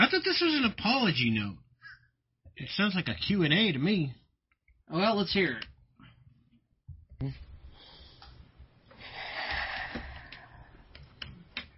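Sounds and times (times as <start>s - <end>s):
speech: 0.2s - 1.6s, 2.6s - 4.2s, 4.9s - 5.7s, 7.2s - 7.5s
heavy breathing: 7.6s - 11.6s.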